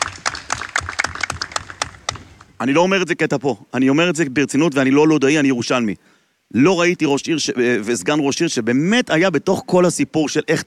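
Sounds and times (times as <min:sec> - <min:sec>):
audience clapping for Lod's deputy mayor: 0:00.0 - 0:02.6
speech: 0:02.6 - 0:10.6.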